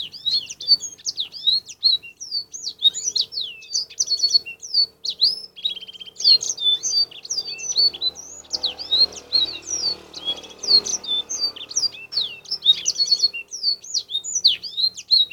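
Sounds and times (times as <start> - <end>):
Canary song for fill-in training: 0.0 - 15.3.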